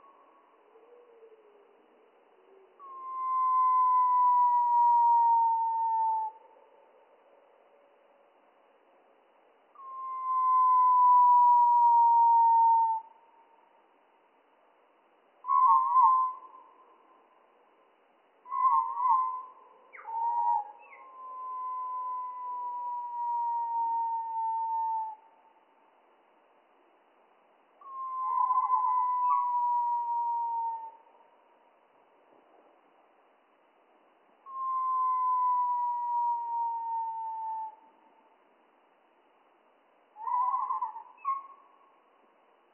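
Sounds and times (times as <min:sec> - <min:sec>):
Spotted flycatcher song, slowed, warbled phrases and whistled tones: 0:00.0 - 0:08.3, 0:09.7 - 0:13.7, 0:15.4 - 0:17.6, 0:18.4 - 0:25.6, 0:27.8 - 0:31.5, 0:34.4 - 0:38.4, 0:40.1 - 0:42.4.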